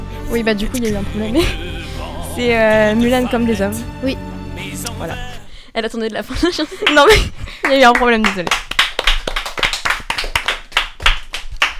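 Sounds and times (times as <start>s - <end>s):
speech: 0.3s - 1.7s, 2.4s - 8.6s
lone person applauding herself: 6.8s - 11.7s.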